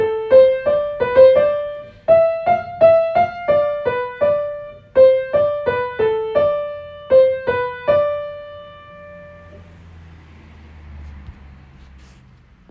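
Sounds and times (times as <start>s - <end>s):
piano: 0.0s - 9.8s.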